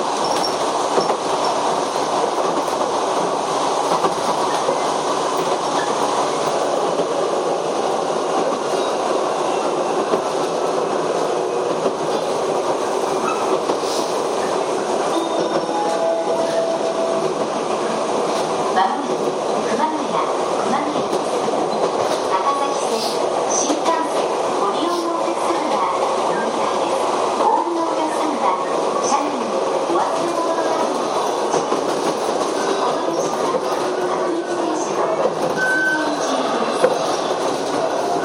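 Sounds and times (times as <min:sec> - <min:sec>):
Chichibu Railway 7500 series train rumbling between Hanyu and Kumagaya: 0:00.0 - 0:38.2
brief tone: 0:35.6 - 0:36.2.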